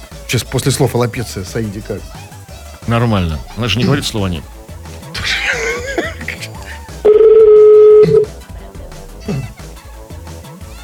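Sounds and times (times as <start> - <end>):
speech: 0.3 - 2.3, 2.9 - 4.6
laughter: 5.1 - 7.1
telephone busy line tone: 7.1 - 8.3.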